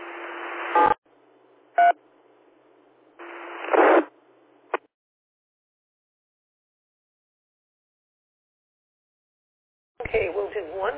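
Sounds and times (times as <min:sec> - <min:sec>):
radio static hiss: 0:00.0 - 0:01.0, 0:03.2 - 0:04.9
speech: 0:10.1 - 0:10.9.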